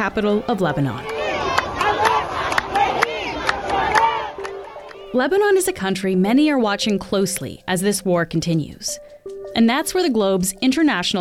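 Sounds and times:
speech: 0.0s - 1.1s, 5.1s - 11.1s
bursts of yelling from protesters: 0.0s - 5.6s
large crowd of protesters shouting and chanting: 0.0s - 5.6s.

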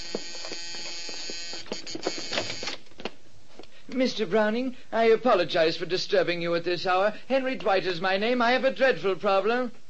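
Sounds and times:
electric doorbell buzzing: 0.0s - 2.8s
speech: 4.0s - 9.8s.

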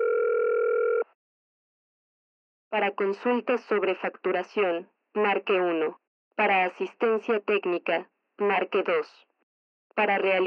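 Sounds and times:
telephone ringback tone calling a mobile phone provider: 0.0s - 1.2s
speech: 2.7s - 9.3s, 10.0s - 10.4s.

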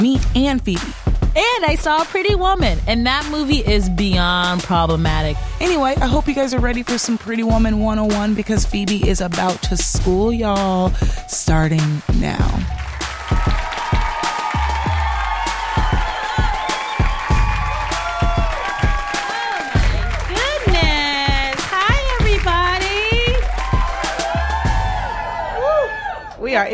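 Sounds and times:
speech: 0.0s - 13.8s
live crowd clapping: 12.6s - 26.6s.

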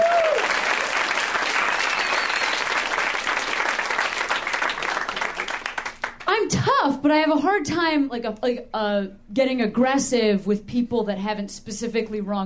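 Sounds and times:
audience applause: 0.0s - 6.2s
speech: 6.6s - 12.4s.

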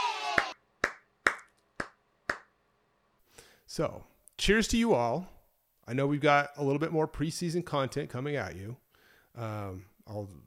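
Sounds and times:
round of applause: 0.0s - 2.5s
speech: 3.7s - 8.8s, 9.4s - 10.4s.

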